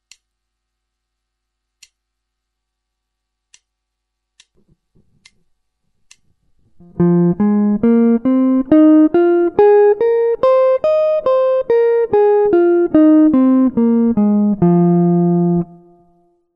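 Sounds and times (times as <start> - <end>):
guitar: 6.7 - 16.5.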